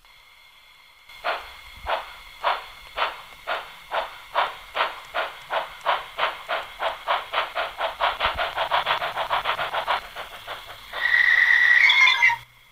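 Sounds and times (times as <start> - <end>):
old steam locomotive chugging: 0.0 - 12.7
steam locomotive brake squeal: 11.0 - 12.5.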